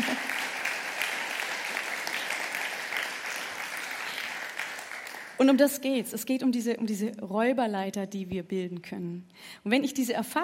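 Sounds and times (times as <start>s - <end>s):
audience applause: 0.0s - 5.4s
speech: 5.4s - 10.4s.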